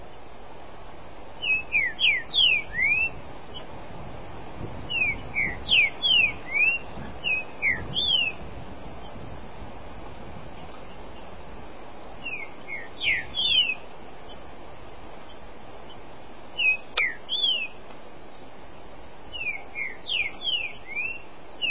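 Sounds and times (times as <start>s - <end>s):
Green-winged Saltator song of bright whistled notes: 1.4s - 3.6s, 4.9s - 8.4s, 12.2s - 14.4s, 16.6s - 17.8s, 19.3s - 21.6s.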